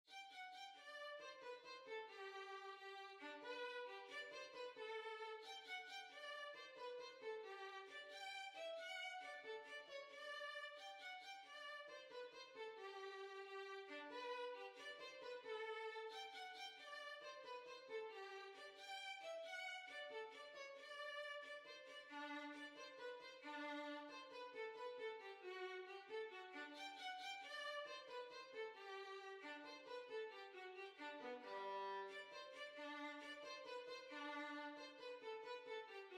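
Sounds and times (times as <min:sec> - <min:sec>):
violin: 0:00.0 - 0:36.1.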